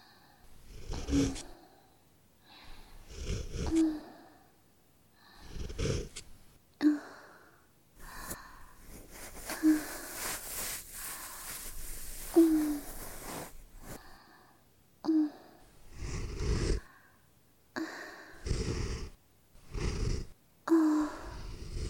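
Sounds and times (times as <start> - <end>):
looped breathing: 0.0 - 4.6, 5.2 - 14.6, 15.4 - 19.2, 20.2 - 21.8
ear cleaning: 8.0 - 14.0.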